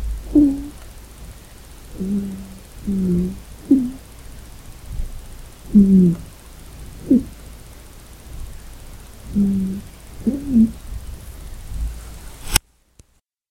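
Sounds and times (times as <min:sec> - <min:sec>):
person snoring: 0:00.2 - 0:00.8, 0:01.9 - 0:04.0, 0:05.7 - 0:06.3, 0:07.0 - 0:07.4, 0:09.2 - 0:10.8.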